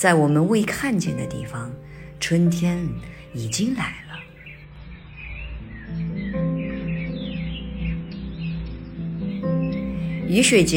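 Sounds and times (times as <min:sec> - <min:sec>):
speech: 0:00.0 - 0:04.0, 0:10.3 - 0:10.7
various birds calling: 0:01.4 - 0:10.7.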